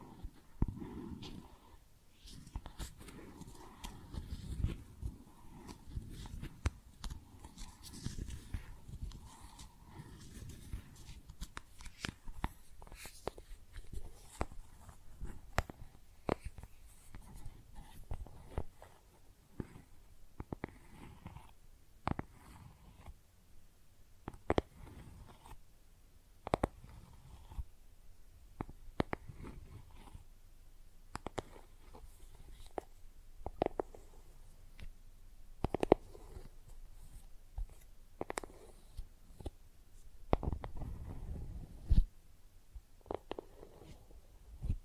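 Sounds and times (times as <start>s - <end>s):
makeup being tapped and scratched: 0.0s - 23.2s, 24.2s - 25.6s, 26.4s - 27.7s, 28.6s - 30.3s, 31.1s - 35.0s, 35.6s - 39.6s, 40.2s - 42.1s, 43.0s - 44.8s.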